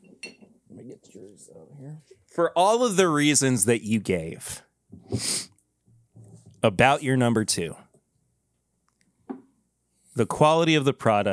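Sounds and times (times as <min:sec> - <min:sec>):
glass clinking: 0:00.0 - 0:00.5
speech: 0:01.0 - 0:05.5, 0:06.6 - 0:07.8, 0:10.2 - 0:11.3.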